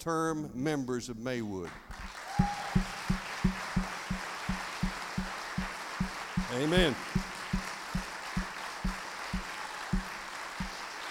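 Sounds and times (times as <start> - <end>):
speech: 0.0 - 2.1, 6.5 - 7.2
audience applauding in a steady rhythm: 1.9 - 11.1.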